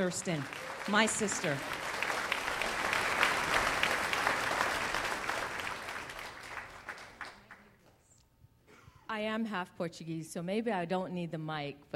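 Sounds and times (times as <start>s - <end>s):
speech: 0.0s - 1.8s, 9.2s - 11.9s
audience applause: 0.0s - 7.7s.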